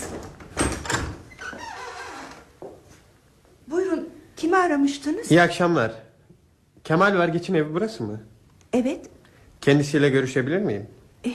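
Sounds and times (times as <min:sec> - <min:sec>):
front door creaking open for a visitor: 0:00.0 - 0:02.7
speech: 0:04.6 - 0:06.0, 0:06.9 - 0:11.3.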